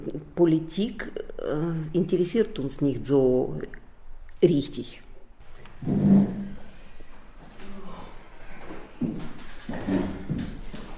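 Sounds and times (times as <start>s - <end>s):
speech: 0.0s - 3.8s, 4.4s - 5.0s, 5.8s - 6.1s
chairs being moved before choir rehearsal: 5.4s - 6.8s, 8.4s - 10.9s.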